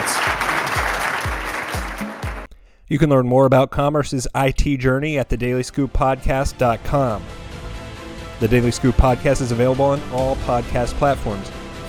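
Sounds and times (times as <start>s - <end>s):
audience applause: 0.0s - 2.5s
speech: 2.9s - 7.4s, 8.4s - 11.8s
low thumping pulses: 6.7s - 11.8s.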